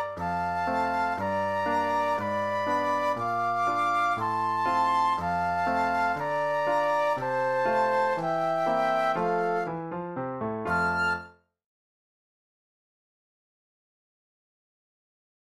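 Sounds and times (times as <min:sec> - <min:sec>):
classical waltz flute duet: 0:00.0 - 0:11.5
piano playing a classical waltz: 0:00.0 - 0:11.6.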